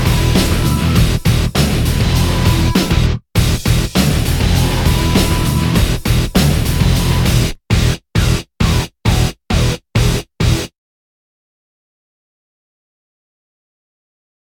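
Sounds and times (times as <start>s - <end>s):
heavy metal music: 0.0s - 10.7s.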